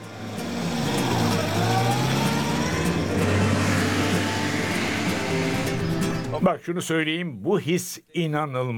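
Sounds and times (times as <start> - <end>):
small car engine revving while driving: 0.0 - 6.4
speech: 6.4 - 8.7.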